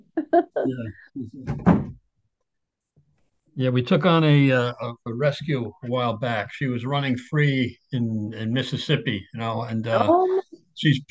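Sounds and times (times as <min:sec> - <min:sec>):
speech: 0:00.3 - 0:02.0, 0:03.6 - 0:11.1
house door closing with a dull wooden thump: 0:01.4 - 0:02.0.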